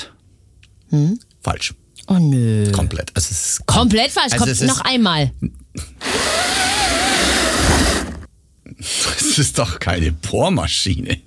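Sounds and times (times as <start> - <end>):
speech: 0.9 - 6.3, 8.8 - 11.2
pleated window blind on a window pane being pulled up: 6.0 - 8.3.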